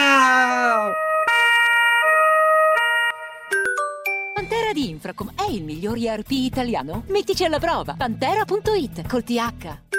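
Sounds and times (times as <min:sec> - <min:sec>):
emergency siren wailing: 0:00.0 - 0:03.5
speech: 0:04.7 - 0:09.8.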